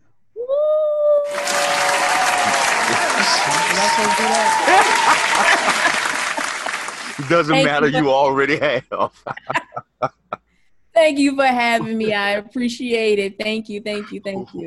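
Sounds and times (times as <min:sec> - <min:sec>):
audience applause: 0:01.3 - 0:08.2
laughter: 0:01.3 - 0:10.5, 0:11.8 - 0:12.2, 0:14.0 - 0:14.6
speech: 0:07.2 - 0:10.2, 0:11.0 - 0:14.6.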